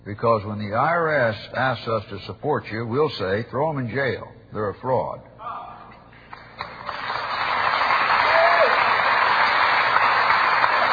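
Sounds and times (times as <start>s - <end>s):
speech: 0.0s - 5.6s
audience applause: 6.3s - 10.9s.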